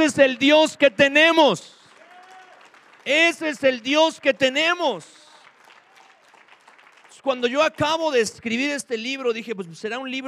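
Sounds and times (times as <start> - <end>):
speech: 0.0 - 1.8, 3.0 - 5.2, 7.2 - 10.2
audience applause: 1.8 - 4.4, 5.0 - 7.2.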